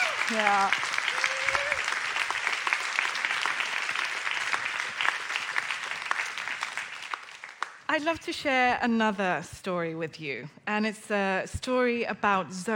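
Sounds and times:
audience applause: 0.0 - 7.8
speech: 0.3 - 0.9, 7.9 - 12.7.

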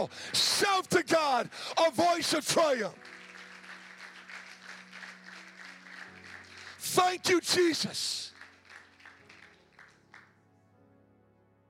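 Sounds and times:
speech: 0.0 - 3.2, 6.9 - 8.2
audience applause: 1.9 - 10.4.

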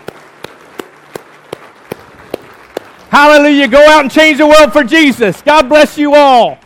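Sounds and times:
audience hand clapping: 0.0 - 4.3
speech: 3.1 - 6.6.

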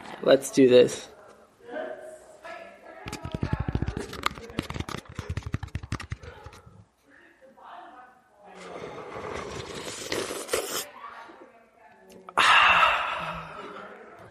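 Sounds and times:
speech: 0.2 - 1.1
wet slurping of raita: 9.0 - 10.9
gasping inhales: 12.4 - 13.8.

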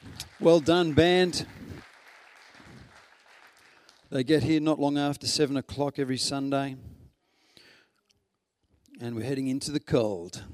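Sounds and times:
audience clapping for the band: 0.0 - 4.6
speech: 0.4 - 1.6, 4.1 - 6.9, 9.0 - 10.5.

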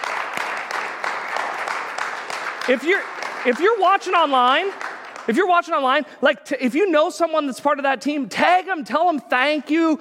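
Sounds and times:
crowd applauding: 0.0 - 6.0
speech: 2.6 - 9.9.

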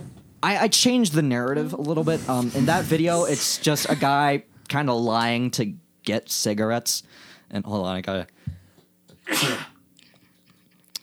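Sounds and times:
speech: 0.4 - 8.4
loud sneeze: 9.2 - 9.8.

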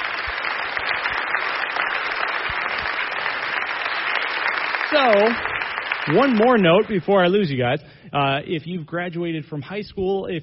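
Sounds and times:
church congregation applauding during a service: 0.0 - 7.5
speech: 4.9 - 10.4.

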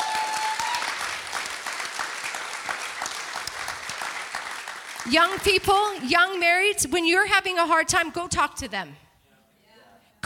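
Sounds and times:
audience applause: 0.0 - 6.4
speech: 5.0 - 9.0.

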